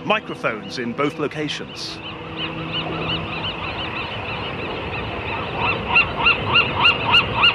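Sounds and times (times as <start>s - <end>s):
low steady foghorn tone of Golden Gate Bridge: 0.0s - 5.6s
dense seabird colony squawking and honking: 0.0s - 7.5s
speech: 0.1s - 2.8s.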